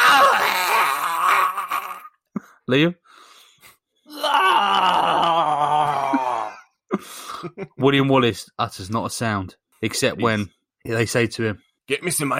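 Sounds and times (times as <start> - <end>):
person yelping: 0.0 - 2.1, 4.1 - 6.6
voice imitating the groan of someone being disembowelled: 0.0 - 2.1, 4.1 - 6.6
speech: 2.7 - 3.0, 7.4 - 12.3.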